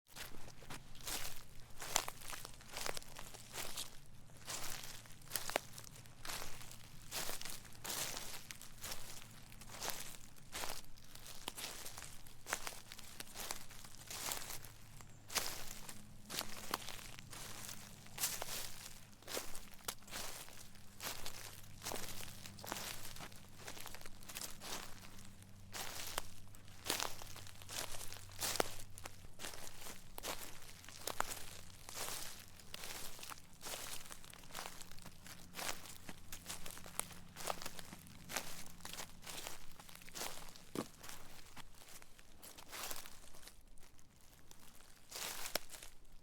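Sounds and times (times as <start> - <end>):
footsteps in leaves: 0.1 - 46.2.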